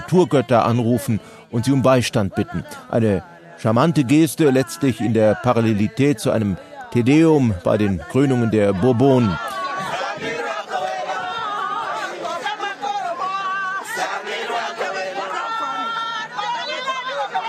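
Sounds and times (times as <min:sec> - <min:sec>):
speech: 0:00.1 - 0:09.6
loud shouting from a crowd: 0:03.2 - 0:05.4, 0:06.7 - 0:17.4.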